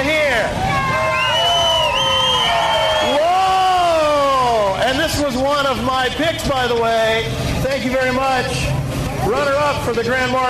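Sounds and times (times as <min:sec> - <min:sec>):
audience cheering: 0:00.5 - 0:05.1
speech: 0:05.7 - 0:10.4.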